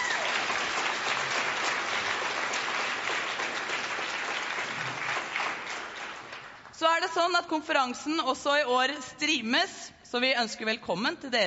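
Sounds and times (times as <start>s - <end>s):
audience applause at a conference: 0.0s - 6.8s
speech: 7.0s - 11.4s.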